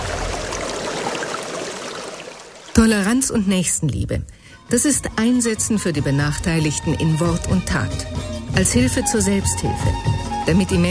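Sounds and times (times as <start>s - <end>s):
water rushing from a new village water-supply pumping station: 0.0s - 3.2s
speech: 2.8s - 10.8s.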